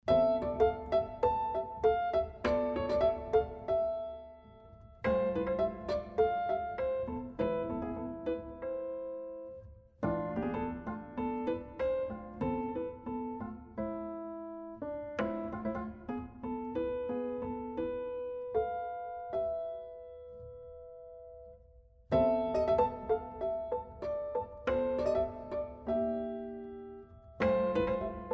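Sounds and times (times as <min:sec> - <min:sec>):
piano sonata: 0:00.0 - 0:28.3.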